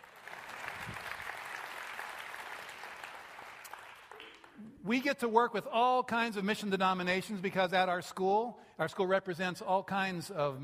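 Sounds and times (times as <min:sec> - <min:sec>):
audience clapping: 0:00.0 - 0:04.8
speech: 0:04.9 - 0:10.6.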